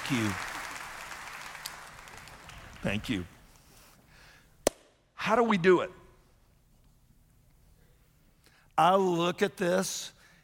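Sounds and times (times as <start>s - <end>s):
crowd applauding: 0.0s - 3.2s
speech: 0.1s - 0.5s, 2.8s - 3.4s, 5.2s - 6.0s, 8.8s - 10.2s.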